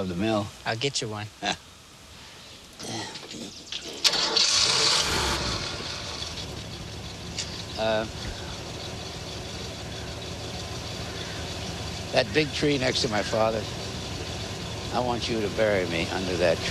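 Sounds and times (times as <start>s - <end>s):
speech: 0.0s - 1.6s, 7.8s - 8.4s, 12.1s - 13.8s, 14.9s - 16.6s
old Jeep engine starting and idling: 3.7s - 16.6s.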